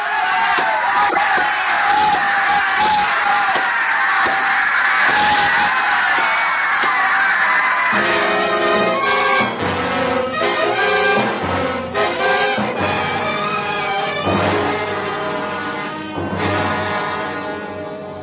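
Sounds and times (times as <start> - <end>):
crowd screaming for the kill: 0.0 - 11.3, 12.0 - 18.0.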